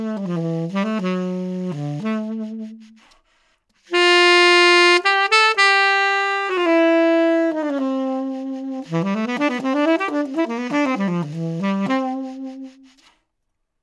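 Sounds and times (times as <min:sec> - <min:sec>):
tenor saxophone: 0:00.0 - 0:13.2.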